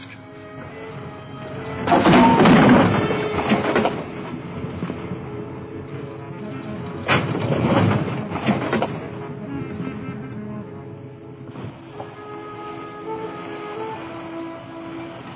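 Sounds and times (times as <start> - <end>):
Jeep driving down a steep slope: 1.6 - 11.9.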